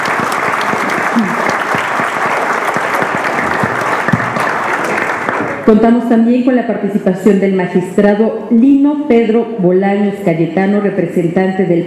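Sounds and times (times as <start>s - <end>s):
audience applause: 0.0s - 5.7s
speech: 5.6s - 11.8s.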